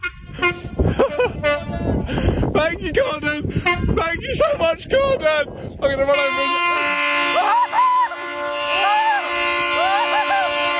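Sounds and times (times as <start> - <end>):
train horn tooting: 0.0 - 0.8, 1.4 - 2.0, 6.0 - 10.7
speech: 2.1 - 6.9.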